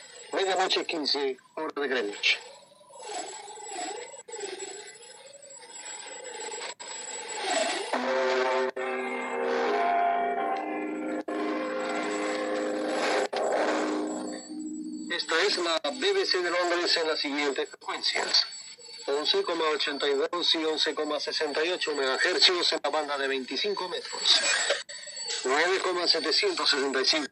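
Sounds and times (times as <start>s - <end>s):
heavy hiss and rasping static: 0.0s - 2.5s, 5.8s - 24.7s, 25.4s - 27.3s
speech: 0.4s - 2.5s, 15.5s - 18.5s, 19.1s - 27.3s
Big Ben clock tower bell chimes at midnight: 7.9s - 15.7s.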